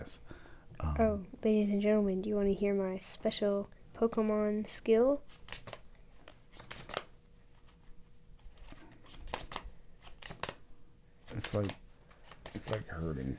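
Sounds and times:
speech: 0.9s - 5.4s, 11.6s - 11.8s, 13.0s - 13.3s
playing cards flicked in crisp snaps: 5.3s - 7.8s, 8.4s - 10.6s, 11.2s - 12.9s.

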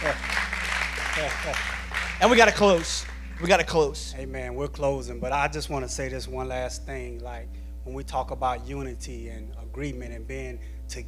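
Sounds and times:
audience golf clap: 0.0s - 3.8s
speech: 1.2s - 11.0s.

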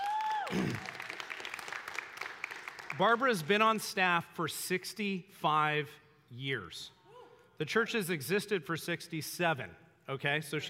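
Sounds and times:
applause: 0.0s - 3.8s
speech: 3.0s - 7.0s, 7.6s - 10.6s.

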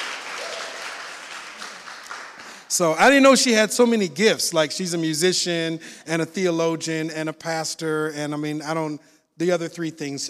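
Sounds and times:
audience applause: 0.0s - 2.8s
speech: 2.7s - 10.2s.

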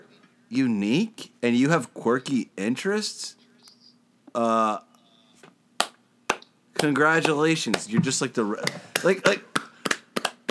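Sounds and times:
speech: 0.5s - 3.4s, 4.4s - 4.9s, 6.8s - 9.6s
hand clap with class ring on: 5.8s - 7.9s, 8.6s - 10.4s.

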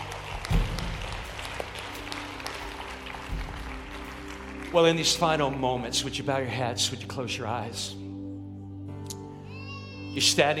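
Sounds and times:
crowd clapping in praise: 0.0s - 6.6s
speech: 4.7s - 8.0s, 10.2s - 10.5s.

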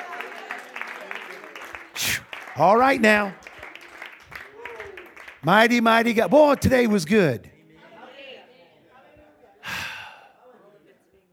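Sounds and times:
audience applause, hand clapping: 0.0s - 7.4s
speech: 2.1s - 3.4s, 5.4s - 7.5s.

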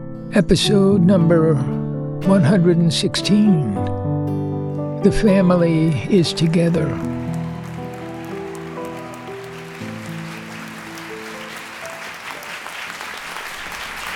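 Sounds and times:
speech: 0.3s - 4.2s, 5.0s - 7.2s
audience applause: 6.0s - 14.1s.

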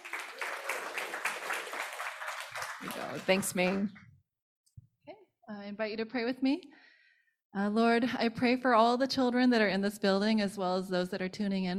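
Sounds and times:
faint applause from a church congregation: 0.0s - 3.9s
speech: 2.9s - 4.0s, 5.7s - 6.8s, 7.5s - 11.7s.

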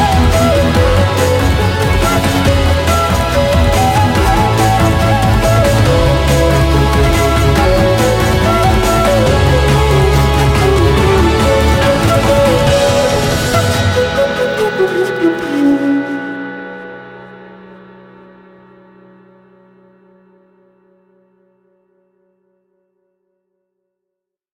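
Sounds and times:
Sri Lanka flute: 0.0s - 17.7s.

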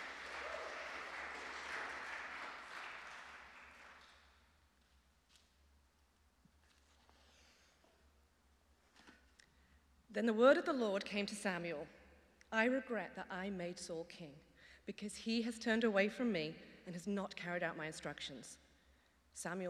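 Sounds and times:
congregation applause welcoming a reader at a church service: 0.0s - 4.4s
speech: 10.1s - 18.6s, 19.4s - 19.6s.

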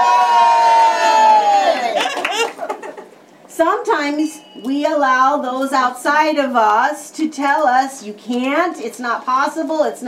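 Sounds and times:
crowd cheering wildly: 0.0s - 2.6s
laughter: 1.7s - 3.2s
speech: 3.6s - 10.0s.

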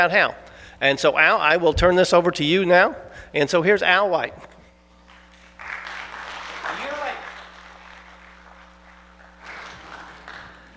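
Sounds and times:
speech: 0.0s - 4.5s
audience applause: 5.1s - 10.7s.

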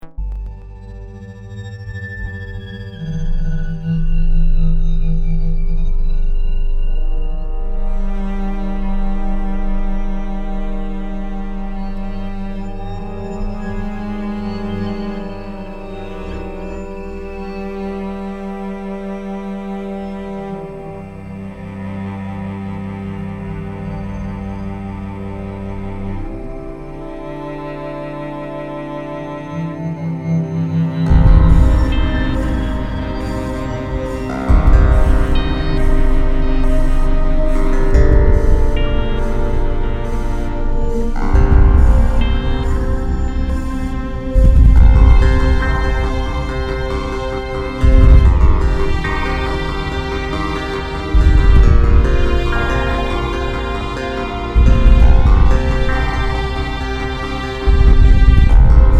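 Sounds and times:
techno strings: 0.0s - 58.9s.

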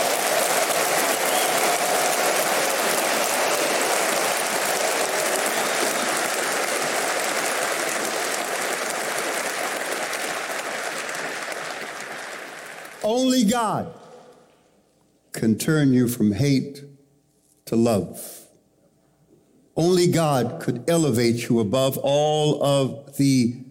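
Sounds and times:
audience applause: 0.0s - 13.4s
speech: 13.1s - 14.0s, 15.4s - 16.9s, 17.7s - 18.4s, 19.8s - 23.6s.

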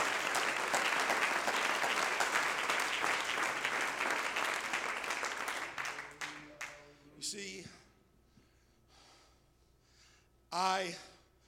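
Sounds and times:
audience clapping: 0.0s - 6.9s.

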